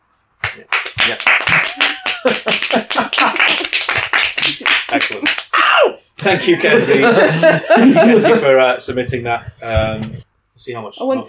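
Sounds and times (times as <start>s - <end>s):
applause: 0.4s - 5.6s
laughter: 0.4s - 10.2s
speech: 0.6s - 3.9s, 4.5s - 5.4s, 6.2s - 11.2s.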